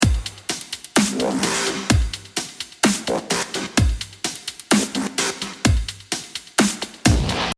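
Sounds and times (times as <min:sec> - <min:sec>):
drum and bass drop: 0:00.0 - 0:07.5.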